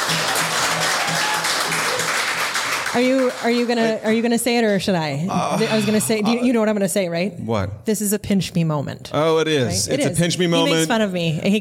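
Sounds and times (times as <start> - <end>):
audience applauding: 0.0 - 4.4
speech: 2.9 - 11.5.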